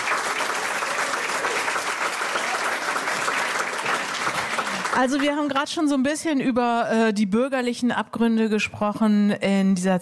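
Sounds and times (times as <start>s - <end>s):
studio audience applause: 0.0s - 5.7s
speech: 5.0s - 10.0s.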